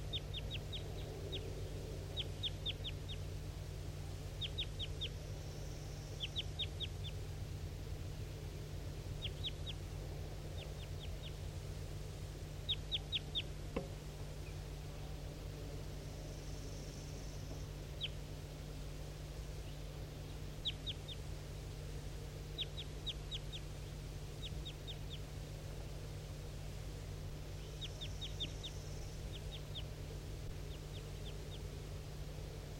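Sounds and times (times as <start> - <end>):
wild bird calling in high thin chirps: 0.0 - 3.4, 4.1 - 7.4, 8.2 - 11.7, 12.5 - 15.2, 16.0 - 18.3, 19.5 - 25.4, 27.4 - 32.0
low hum: 0.0 - 32.7.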